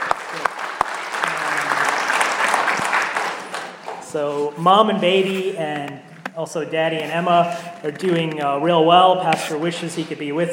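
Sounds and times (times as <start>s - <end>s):
audience applause: 0.0s - 4.1s
speech: 4.1s - 10.5s.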